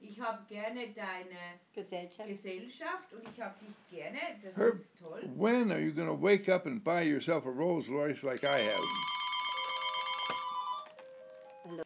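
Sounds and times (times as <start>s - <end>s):
speech: 0.2s - 9.2s, 11.7s - 11.8s
telephone ringing during a lecture: 8.4s - 11.8s.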